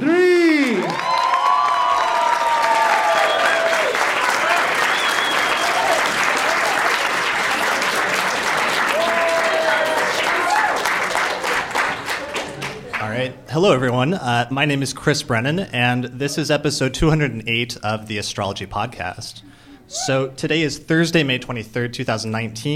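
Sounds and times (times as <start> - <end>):
crowd applause: 0.4 - 13.1
whoops and whistles: 2.7 - 3.8, 4.8 - 6.0
speech: 13.6 - 22.7.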